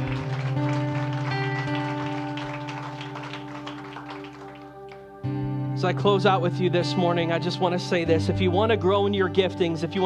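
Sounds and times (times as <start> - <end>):
audience applause: 0.0 - 5.1
sustained keyboard chords: 0.0 - 10.0
speech: 5.8 - 10.0.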